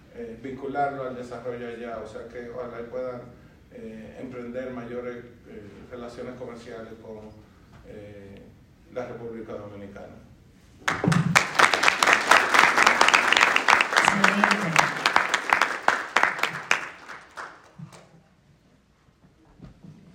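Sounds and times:
speech: 0.4 - 11.6
audience applause: 10.9 - 18.1.

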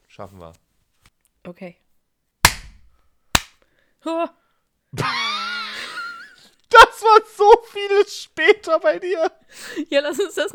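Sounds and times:
speech: 0.2 - 0.7, 1.4 - 1.9, 4.0 - 5.2, 7.0 - 10.5
hand clapping: 2.5 - 2.8, 3.4 - 3.6
laughter: 5.0 - 6.4.

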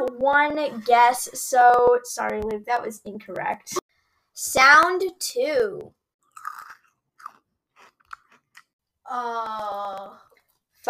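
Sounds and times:
speech: 0.2 - 3.8, 4.4 - 6.0, 9.1 - 10.8
chewing crunchy cereal: 6.2 - 8.8.

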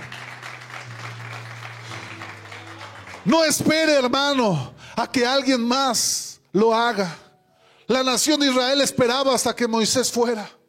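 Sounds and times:
audience applause: 0.0 - 4.1
speech: 3.2 - 7.2, 7.9 - 10.6.

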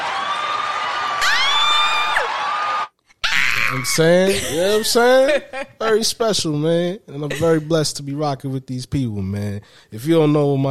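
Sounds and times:
applause and cheering: 0.0 - 2.9
speech: 3.8 - 10.6.

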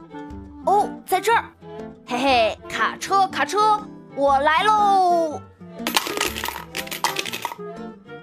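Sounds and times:
speech: 1.1 - 5.4
coins shaken out of piggy bank: 5.9 - 7.6.

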